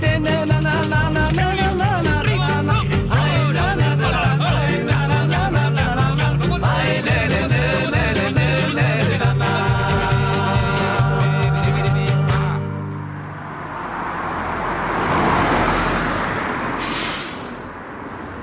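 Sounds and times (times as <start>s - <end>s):
music: 0.0s - 13.1s
street traffic roar at a bus stop: 0.0s - 18.4s.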